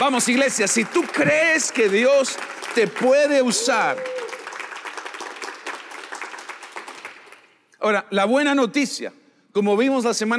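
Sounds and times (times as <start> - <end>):
speech: 0.0 - 4.3, 7.8 - 10.3
audience applauding: 0.0 - 7.6.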